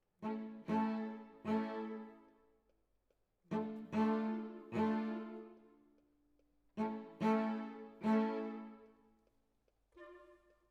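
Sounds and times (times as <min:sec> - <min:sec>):
cello solo: 0:00.2 - 0:02.3, 0:03.5 - 0:05.7, 0:06.8 - 0:09.0.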